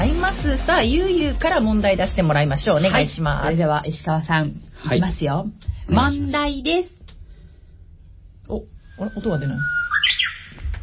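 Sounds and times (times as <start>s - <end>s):
speech: 0.1s - 7.0s, 8.5s - 9.8s
Japanese bush warbler (uguisu) song: 8.9s - 10.6s.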